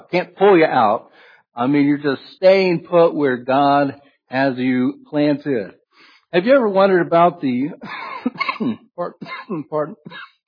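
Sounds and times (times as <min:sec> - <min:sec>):
speech: 0:00.1 - 0:10.3
preacher coughing hoarsely during a church sermon: 0:07.8 - 0:10.4.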